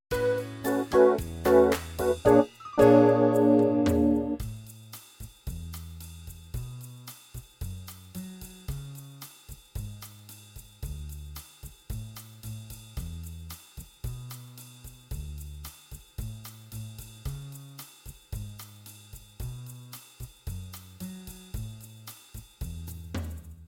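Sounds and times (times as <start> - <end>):
musical improvisation in A: 0.1 - 4.4.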